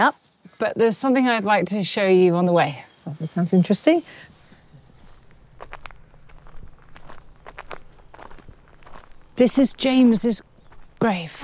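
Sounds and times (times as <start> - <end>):
speech: 0.0 - 4.4, 9.4 - 11.4
soft footsteps of people walking toward Avebury Manor: 4.2 - 11.4.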